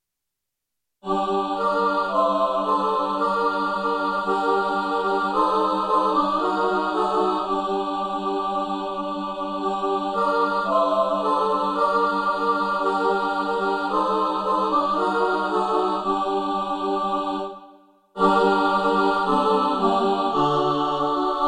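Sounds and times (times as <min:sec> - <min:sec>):
SATB four-part choir singing: 0:01.0 - 0:21.4.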